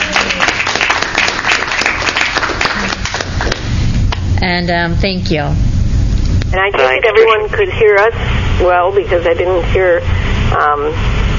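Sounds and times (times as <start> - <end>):
round of applause: 0.0 - 3.7
speech: 4.4 - 5.7, 6.5 - 11.1.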